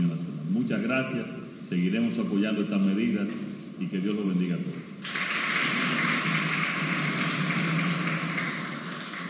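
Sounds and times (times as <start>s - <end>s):
speech: 0.1s - 5.2s
applause: 5.0s - 9.2s.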